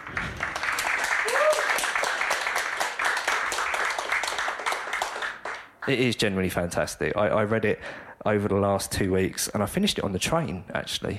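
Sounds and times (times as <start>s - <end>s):
room full of people applauding: 0.0s - 6.1s
speech: 5.9s - 11.1s.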